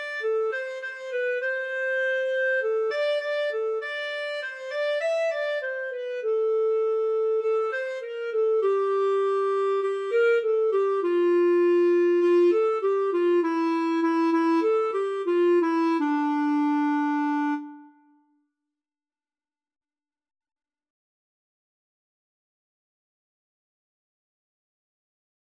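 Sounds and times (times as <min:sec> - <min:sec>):
clarinet duet: 0:00.0 - 0:18.2.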